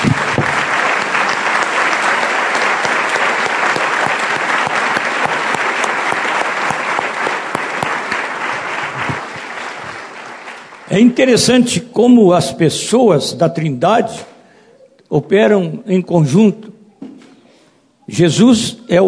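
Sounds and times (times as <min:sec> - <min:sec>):
crowd applause: 0:00.0 - 0:11.2
speech: 0:11.0 - 0:14.3, 0:15.1 - 0:16.7, 0:18.1 - 0:19.0.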